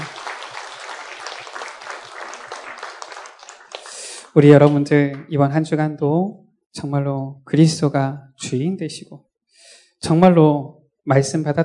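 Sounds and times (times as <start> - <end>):
crowd applause: 0.0 - 4.3
speech: 4.4 - 11.6.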